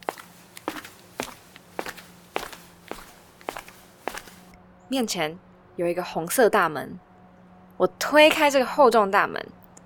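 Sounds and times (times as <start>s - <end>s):
slow crunchy footsteps approaching: 0.0s - 4.6s
speech: 4.9s - 7.1s, 7.8s - 9.6s.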